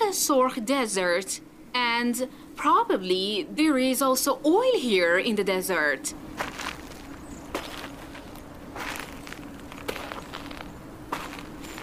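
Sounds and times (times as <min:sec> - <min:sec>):
speech: 0:00.1 - 0:06.6
footsteps crunching on salt-crusted desert surface: 0:06.3 - 0:11.8.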